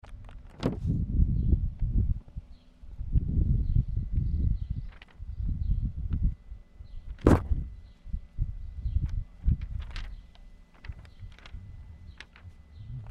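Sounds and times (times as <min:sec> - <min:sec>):
paper rustling in wind: 0:00.0 - 0:13.0.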